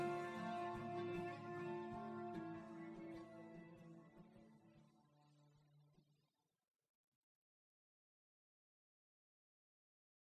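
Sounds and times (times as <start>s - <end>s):
modulated solo extraction: 0.0s - 4.3s.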